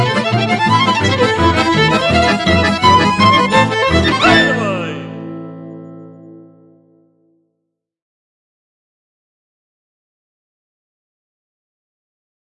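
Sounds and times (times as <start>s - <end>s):
trio playing czardas: 0.2s - 5.3s.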